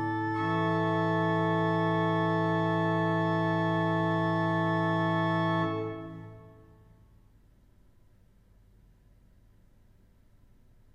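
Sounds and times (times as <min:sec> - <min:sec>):
choral music: 0:00.0 - 0:06.8.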